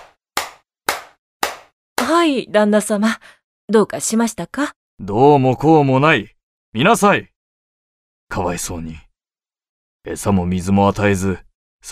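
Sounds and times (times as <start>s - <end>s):
sharp hand claps: 0.0s - 2.2s
speech: 2.1s - 7.3s, 8.3s - 9.0s, 10.0s - 11.9s.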